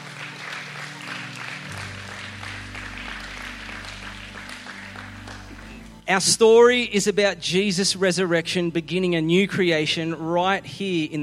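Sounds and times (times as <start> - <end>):
audience applause: 0.0 - 6.0
speech: 6.1 - 11.2.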